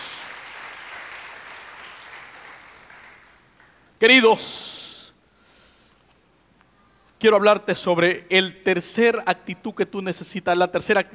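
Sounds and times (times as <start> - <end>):
audience applauding: 0.0 - 4.0
speech: 4.0 - 4.7, 7.2 - 11.1.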